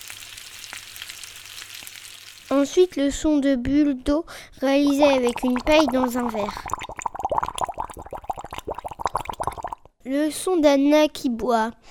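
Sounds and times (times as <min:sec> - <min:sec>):
potatoes sizzling in a frying pan: 0:00.0 - 0:02.9
speech: 0:02.6 - 0:06.9, 0:10.1 - 0:11.8.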